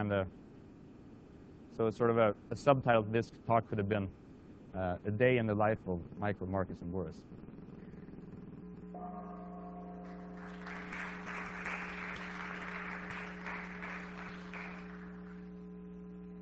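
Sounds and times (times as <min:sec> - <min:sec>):
speech: 0:00.0 - 0:00.4, 0:01.8 - 0:07.5
gong ringing: 0:09.0 - 0:13.1
applause: 0:10.0 - 0:15.6.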